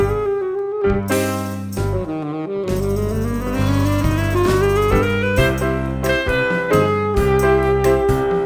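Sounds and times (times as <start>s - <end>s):
bar saxophone playing: 0.1s - 8.3s.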